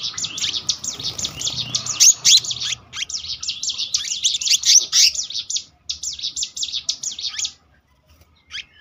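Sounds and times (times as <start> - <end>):
selendang biru songbird singing rolling chirps, trills and whistles: 0.0 - 8.7.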